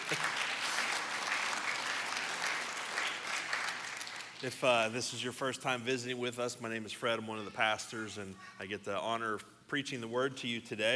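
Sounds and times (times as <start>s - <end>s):
audience applause: 0.0s - 4.4s
speech: 4.4s - 10.9s.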